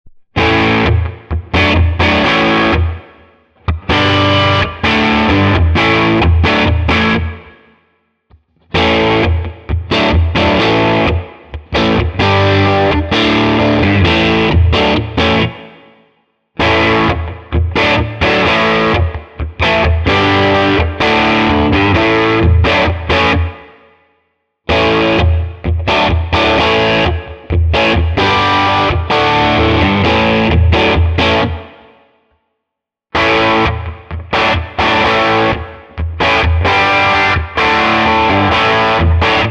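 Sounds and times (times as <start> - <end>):
mid-gain chords in all positions: 0.1 - 7.7, 8.7 - 15.9, 16.6 - 23.8, 24.7 - 31.9, 33.2 - 39.4.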